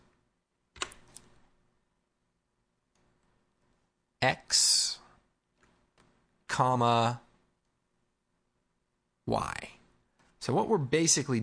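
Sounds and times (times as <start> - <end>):
computer keyboard clicks while typing into video-editing software: 0.7 - 1.3
speech: 4.2 - 4.9, 6.6 - 7.2, 9.3 - 9.8, 10.4 - 11.4.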